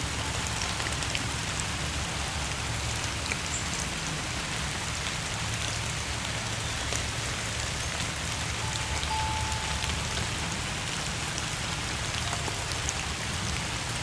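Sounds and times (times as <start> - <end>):
falling raindrops pattering in a gentle downpour: 0.0 - 14.0
xylophone left out in the rain chiming: 8.6 - 10.2.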